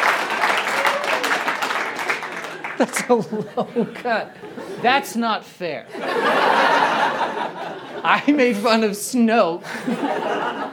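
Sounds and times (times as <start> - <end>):
audience clapping: 0.0 - 3.3
laughter: 2.4 - 4.8, 5.9 - 8.6, 9.6 - 10.7
speech: 2.8 - 6.6, 7.2 - 10.6.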